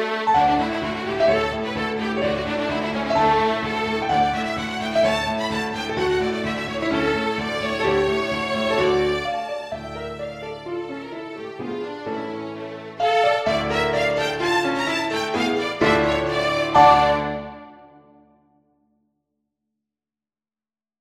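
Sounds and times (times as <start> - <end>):
backing track: 0.2 - 10.8, 12.4 - 18.1.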